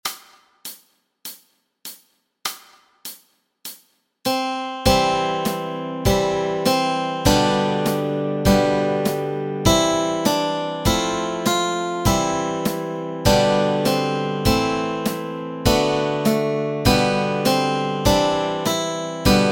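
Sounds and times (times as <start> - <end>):
guitar and ukulele playing melody and chords: 4.3 - 19.5.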